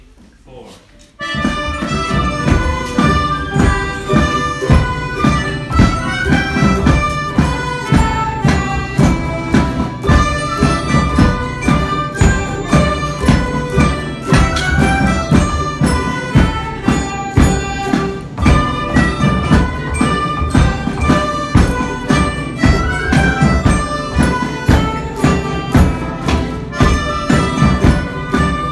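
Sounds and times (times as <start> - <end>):
polka band playing: 1.0 - 28.6.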